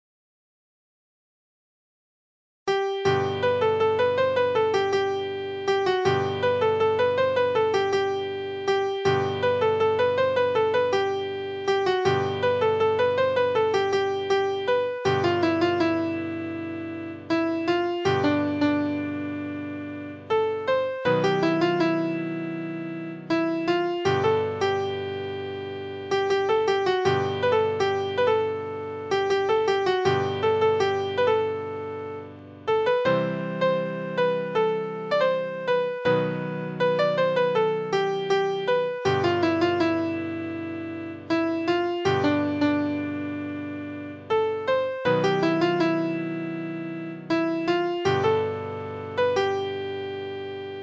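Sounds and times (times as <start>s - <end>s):
piano: 2.7s - 50.8s.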